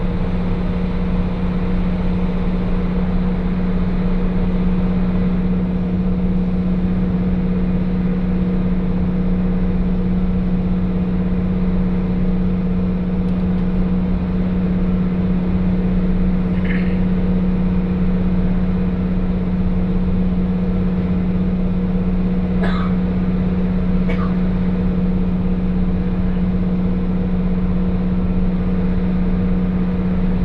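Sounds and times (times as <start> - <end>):
train engine drone on the Hakodate Main Line: 0.0 - 30.4.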